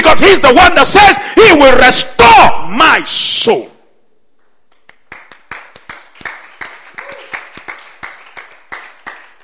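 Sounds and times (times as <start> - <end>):
speech: 0.1 - 3.7
audience clapping: 4.4 - 9.4.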